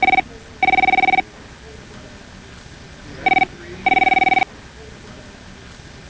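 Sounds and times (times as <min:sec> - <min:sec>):
telephone: 0:00.0 - 0:01.3, 0:03.1 - 0:05.0.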